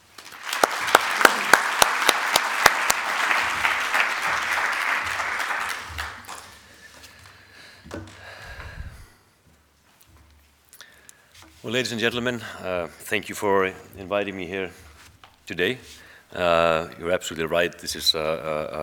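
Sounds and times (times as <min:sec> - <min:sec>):
audience applause welcoming a speaker at a talk: 0:00.0 - 0:07.0
speech: 0:11.7 - 0:14.8, 0:15.5 - 0:18.8.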